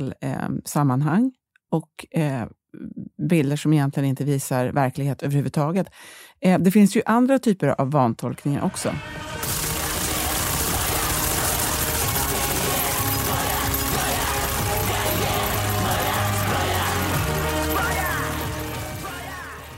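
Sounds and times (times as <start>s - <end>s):
speech: 0.0s - 9.5s
automatic weapon firing in a video: 9.4s - 14.0s
mechanical clatter: 9.4s - 19.1s.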